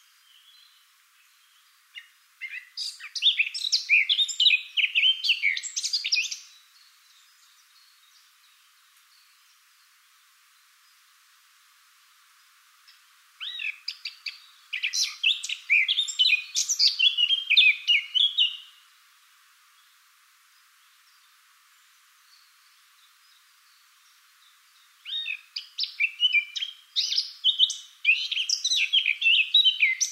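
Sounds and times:
Eurasian blackcap song: 0.0s - 9.4s, 12.9s - 18.8s, 22.2s - 30.1s.

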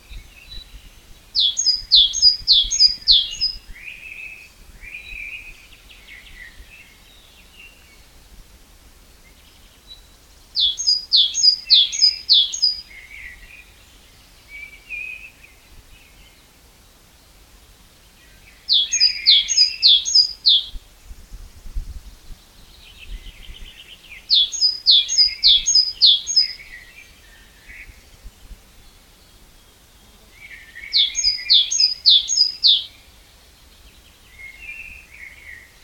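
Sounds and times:
Great tit song: 0.1s - 3.6s, 10.6s - 12.9s, 18.7s - 20.7s, 23.0s - 26.8s, 30.8s - 32.9s
soft twittering: 1.4s - 3.6s, 18.7s - 20.6s, 24.3s - 26.7s, 30.9s - 32.9s.

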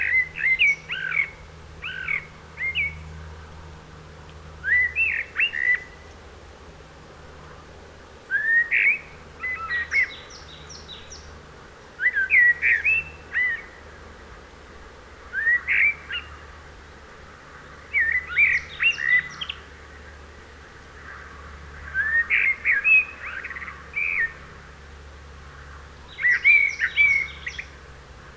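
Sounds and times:
Eurasian blackbird whistled song: 0.0s - 3.0s, 4.6s - 6.0s, 8.3s - 11.2s, 12.0s - 13.7s, 15.3s - 16.3s, 17.9s - 19.6s, 21.9s - 24.4s, 26.1s - 27.7s.

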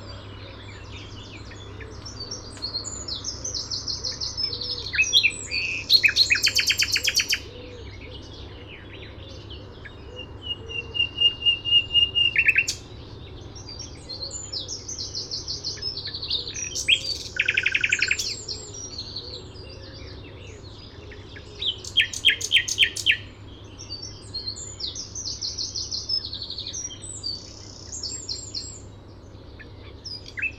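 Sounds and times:
common nightingale singing: 0.0s - 30.5s.

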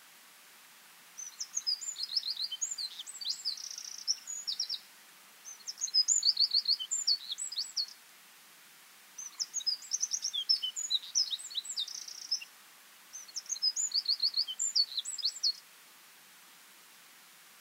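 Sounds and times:
Eurasian wren Troglodytes troglodytes singing: 1.2s - 8.0s, 9.2s - 12.5s, 13.1s - 15.6s.

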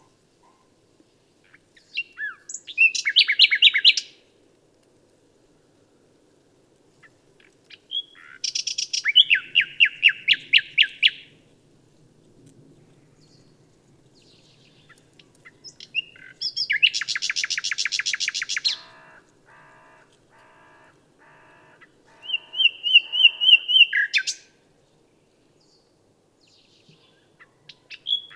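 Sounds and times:
common nightingale singing: 1.5s - 4.2s, 7.4s - 11.4s, 14.2s - 24.5s, 26.4s - 28.3s.

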